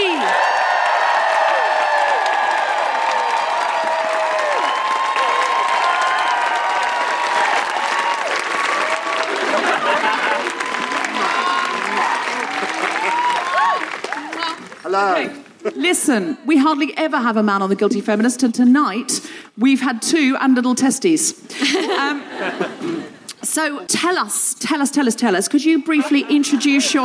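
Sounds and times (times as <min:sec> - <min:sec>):
audience applause at a live feminist comedy show: 0:00.0 - 0:15.6
laughter: 0:08.8 - 0:14.6, 0:21.5 - 0:23.2, 0:25.8 - 0:27.0
speech: 0:15.9 - 0:27.0.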